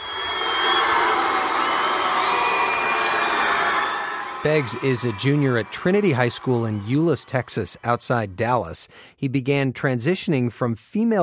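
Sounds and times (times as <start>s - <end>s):
high whoops: 0.0s - 7.7s
crowd cheering and booing after wrestling match: 0.0s - 8.6s
speech: 4.4s - 11.2s.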